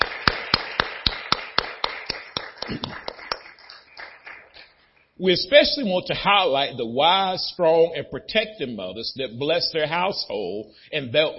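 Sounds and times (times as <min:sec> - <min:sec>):
audience applauding: 0:00.0 - 0:04.9
speech: 0:02.7 - 0:03.1, 0:05.2 - 0:11.3.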